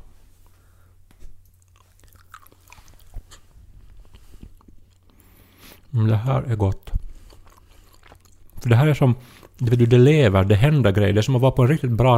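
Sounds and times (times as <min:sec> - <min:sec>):
chewing and biting on a piece of ruby chocolate: 0:01.4 - 0:09.7
speech: 0:05.9 - 0:06.8, 0:08.6 - 0:12.1.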